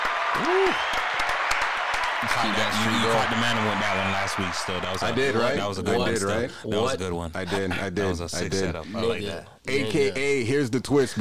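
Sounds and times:
audience clapping: 0.0 - 5.8
short vocal whoop: 0.3 - 1.0
speech: 0.4 - 1.2, 2.2 - 11.1.

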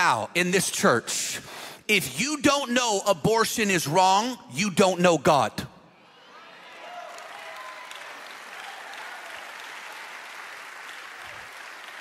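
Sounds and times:
speech: 0.0 - 5.7
weak audience clapping: 6.8 - 12.0.

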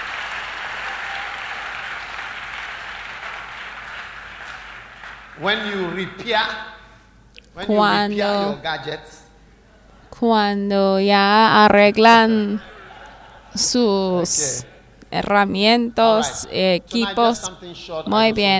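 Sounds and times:
audience applauding: 0.0 - 6.0
speech: 5.4 - 6.7, 7.6 - 9.2, 10.2 - 12.7, 13.5 - 18.5
laughter: 12.4 - 14.9.

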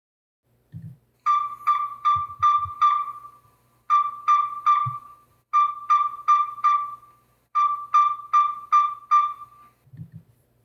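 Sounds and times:
yellow-rumped tinkerbird calling: 1.3 - 9.7.

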